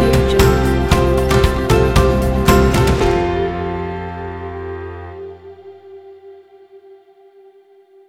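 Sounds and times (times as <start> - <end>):
upbeat corporate music: 0.0 - 5.4.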